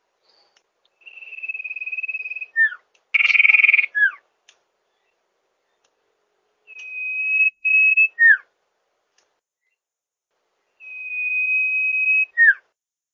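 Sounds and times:
bird song used for training songbirds: 0.2s - 8.5s, 10.6s - 12.7s.

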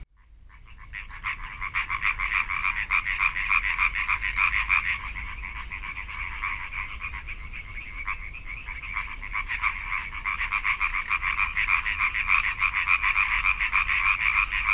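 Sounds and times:
tree frogs calling in a chorus at Moesgaard Pond: 0.2s - 14.7s.

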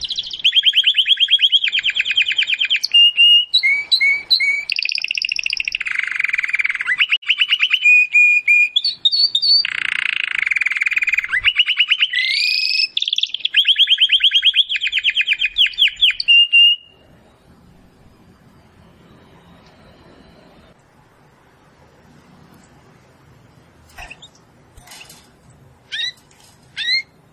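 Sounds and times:
domestic canary singing: 0.0s - 17.4s, 23.9s - 27.3s.

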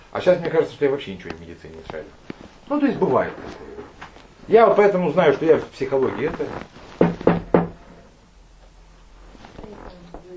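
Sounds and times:
speech: 0.1s - 6.7s
knocking on a door: 7.0s - 7.9s.

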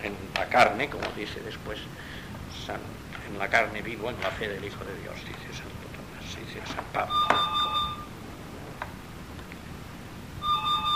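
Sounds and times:
speech: 0.0s - 7.7s
low rumble: 0.0s - 10.9s
telephone ringing electronically: 7.0s - 8.2s, 10.4s - 10.9s.

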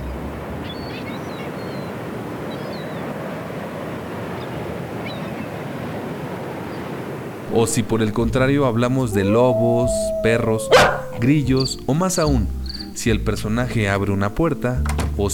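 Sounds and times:
ocean waves breaking on the shore: 0.0s - 11.2s
speech: 7.5s - 15.3s.

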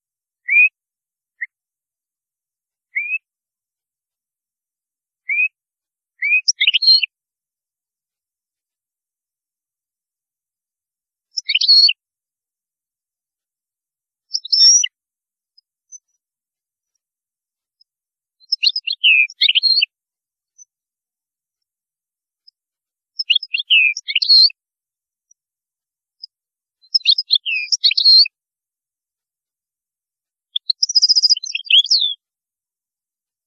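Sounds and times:
European goldfinch twittering song: 0.4s - 0.7s, 2.9s - 3.3s, 5.3s - 5.6s, 6.2s - 7.1s, 11.3s - 11.9s, 14.3s - 14.9s, 18.4s - 19.9s, 23.2s - 24.6s, 26.8s - 28.3s, 30.6s - 32.2s.

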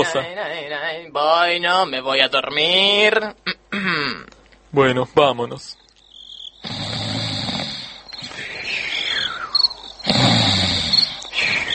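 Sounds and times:
speech: 0.0s - 5.8s
person snoring: 6.6s - 11.7s.

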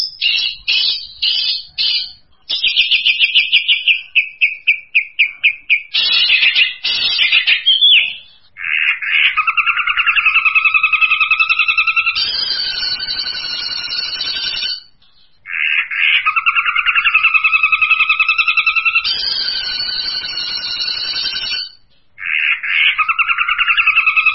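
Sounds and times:
long-tailed shrike singing harsh scratchy song: 0.0s - 24.3s.

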